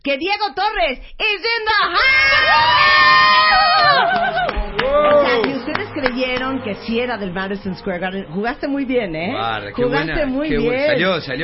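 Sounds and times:
speech: 0:00.0 - 0:11.4
concert crowd cheering, phone recording: 0:02.0 - 0:06.6.

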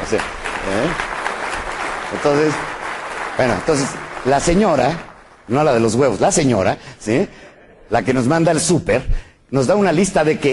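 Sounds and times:
audience applause: 0:00.0 - 0:06.5
speech: 0:00.1 - 0:01.1, 0:02.1 - 0:02.7, 0:03.4 - 0:10.5.

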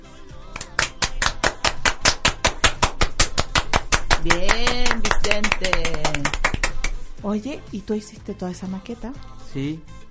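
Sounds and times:
applause: 0:00.6 - 0:07.0
speech: 0:04.2 - 0:06.4, 0:07.2 - 0:09.9.

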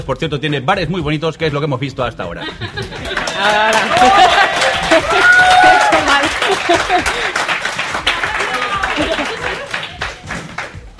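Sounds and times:
speech: 0:00.0 - 0:05.6, 0:06.5 - 0:07.5
laughter: 0:02.4 - 0:10.4
live audience applause: 0:02.9 - 0:10.9.

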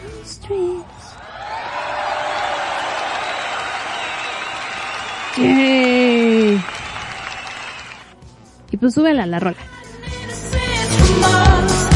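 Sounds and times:
speech: 0:00.3 - 0:00.9, 0:05.3 - 0:05.9, 0:08.8 - 0:09.6, 0:11.1 - 0:11.8
applause: 0:01.4 - 0:08.1.

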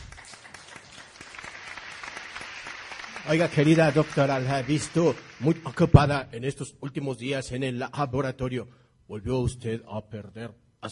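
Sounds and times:
audience applause: 0:00.0 - 0:06.1
speech: 0:03.2 - 0:10.9.

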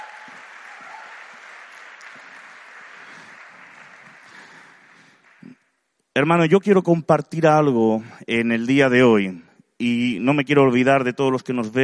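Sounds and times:
audience applause: 0:00.0 - 0:05.6
speech: 0:06.2 - 0:11.8.

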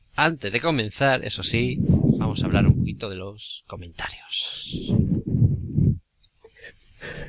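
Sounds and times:
speech: 0:00.2 - 0:05.2
audible breathing into the microphone: 0:01.8 - 0:02.2, 0:04.7 - 0:07.2.

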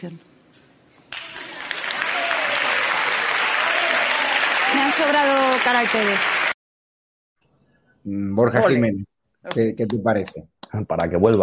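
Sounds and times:
speech: 0:00.0 - 0:00.3, 0:04.8 - 0:06.4, 0:08.0 - 0:11.4
audience applause: 0:01.1 - 0:06.6.

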